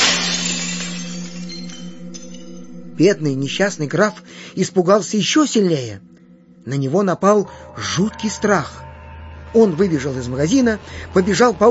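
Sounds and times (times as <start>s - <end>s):
broken glass shards bouncing across the ground: 0.0s - 3.0s
speech: 3.0s - 8.8s, 9.5s - 11.6s.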